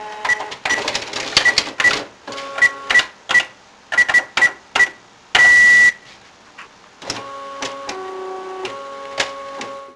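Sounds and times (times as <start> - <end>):
fax machine: 0.0 - 6.0, 7.1 - 9.9.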